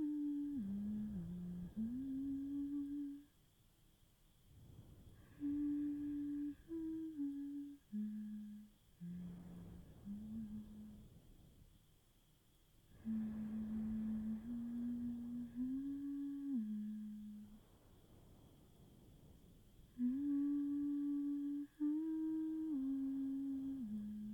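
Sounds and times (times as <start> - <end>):
person humming: 0.0 - 3.3, 5.2 - 11.0, 13.0 - 17.6, 20.0 - 24.3
crickets: 0.0 - 24.3.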